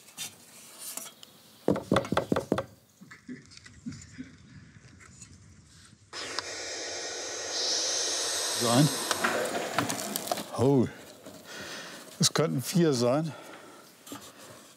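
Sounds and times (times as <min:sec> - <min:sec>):
knocking on a wooden nest box: 0:01.7 - 0:02.7
steady rushing hiss: 0:06.2 - 0:13.8
speech: 0:08.6 - 0:09.0, 0:10.6 - 0:11.0, 0:12.4 - 0:13.4.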